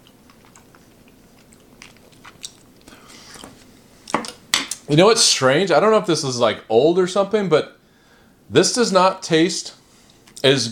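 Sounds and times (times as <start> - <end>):
wet chewing of a spoonful of macaroni and cheese: 0.0 - 3.7
speech: 4.9 - 7.8, 8.5 - 9.8, 10.4 - 10.7.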